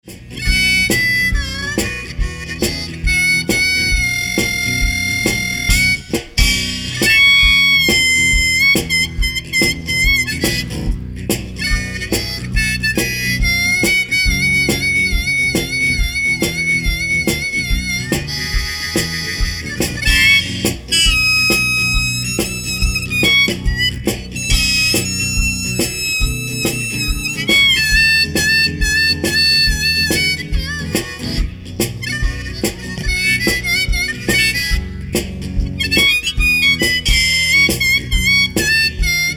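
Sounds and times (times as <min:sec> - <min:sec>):
one man band playing blues: 0:00.0 - 0:39.3.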